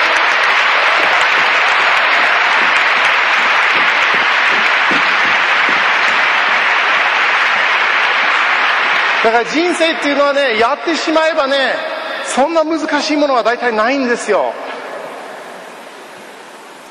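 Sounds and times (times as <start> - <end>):
audience applause at a Japanese-language talk: 0.0 - 11.5
speech: 9.2 - 14.7.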